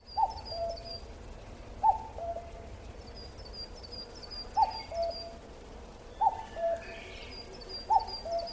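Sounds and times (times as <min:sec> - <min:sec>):
bird hooting call falling to a lower second note: 0:00.0 - 0:01.0, 0:01.8 - 0:02.7, 0:03.4 - 0:05.4, 0:06.1 - 0:08.5.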